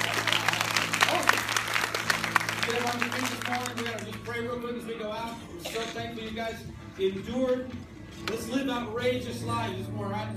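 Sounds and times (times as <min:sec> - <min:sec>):
audience applause: 0:00.0 - 0:04.5
speech: 0:02.7 - 0:10.3.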